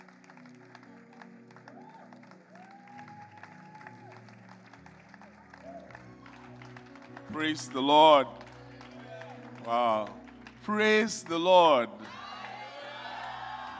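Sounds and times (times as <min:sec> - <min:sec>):
audience clapping: 0:00.0 - 0:13.7
sustained keyboard-like musical chords with rising tones: 0:00.0 - 0:13.7
speech: 0:07.4 - 0:08.4, 0:09.7 - 0:12.2.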